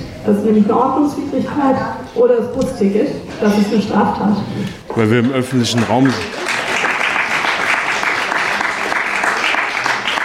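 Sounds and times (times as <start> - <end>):
speech: 0.3 - 6.4
audience clapping: 5.0 - 10.2.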